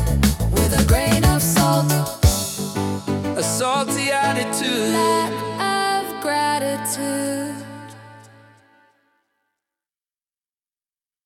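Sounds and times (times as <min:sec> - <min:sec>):
reggae music: 0:00.0 - 0:07.8.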